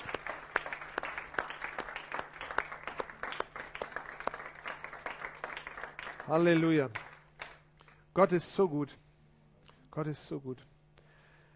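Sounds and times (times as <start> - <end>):
audience applause: 0.0 - 7.6
speech: 6.3 - 7.0, 8.2 - 9.0, 10.0 - 10.7.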